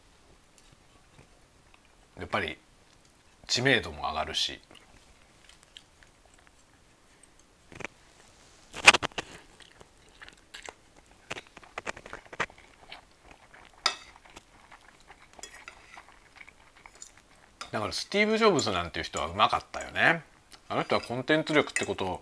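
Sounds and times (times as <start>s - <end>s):
speech: 2.3s - 2.6s, 3.5s - 4.8s, 17.8s - 22.1s
person chewing crunchy food: 4.6s - 8.0s, 8.8s - 17.8s
cutlery clicking on a dish: 13.8s - 14.1s, 20.9s - 22.0s.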